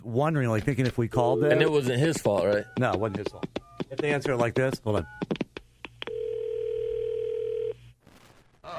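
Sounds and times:
speech: 0.0s - 5.4s
telephone dial tone: 6.0s - 7.8s.

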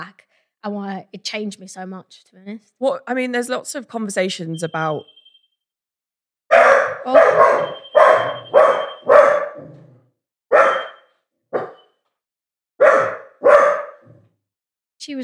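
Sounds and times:
speech: 0.0s - 5.2s, 7.0s - 7.7s, 15.1s - 15.2s
small dog barking aggressively: 6.5s - 9.8s, 10.5s - 11.0s, 11.6s - 11.8s, 12.8s - 14.2s.

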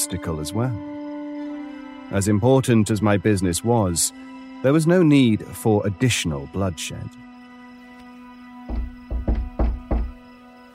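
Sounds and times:
speech: 0.0s - 1.0s, 2.1s - 7.3s
firm knocking on a door: 8.7s - 10.2s.

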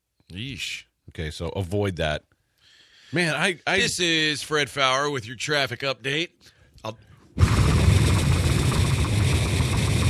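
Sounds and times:
speech: 0.3s - 2.3s, 3.1s - 7.1s
helicopter engine roaring: 7.4s - 10.0s.

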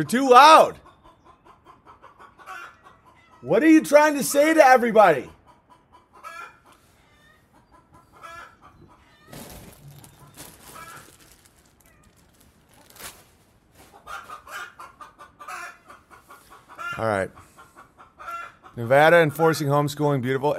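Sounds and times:
speech: 0.0s - 0.8s, 3.4s - 5.4s, 17.0s - 17.4s, 18.8s - 20.5s
chickens clucking: 0.0s - 12.9s, 13.5s - 19.7s
rustling: 9.3s - 14.4s.

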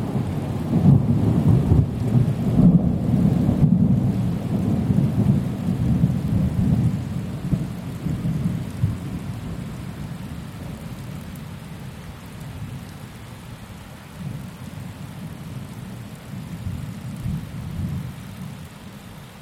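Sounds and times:
thunderstorm heard from a caravan: 0.0s - 10.1s.

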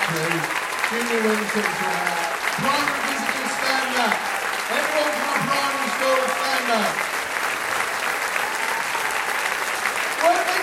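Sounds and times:
audience applause at a school gathering: 0.0s - 10.6s
speech: 0.1s - 7.1s.

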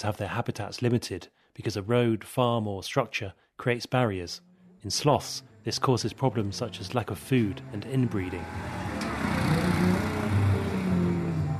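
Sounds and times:
speech: 0.0s - 9.4s
cars and ATVs chugging along roads in Puerto Viejo: 6.7s - 11.5s.

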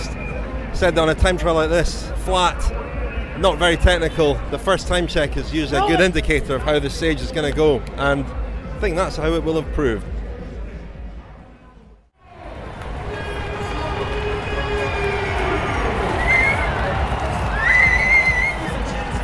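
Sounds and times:
speech: 0.8s - 10.2s
roadside crowd cheering a cyclist: 12.2s - 19.2s
shrill whistles: 14.9s - 16.9s, 17.5s - 18.8s.

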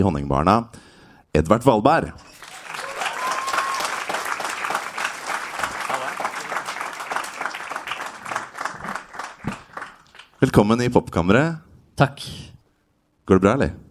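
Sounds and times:
speech: 0.0s - 2.3s, 10.4s - 12.5s, 13.3s - 13.8s
audience applause: 2.3s - 10.4s.

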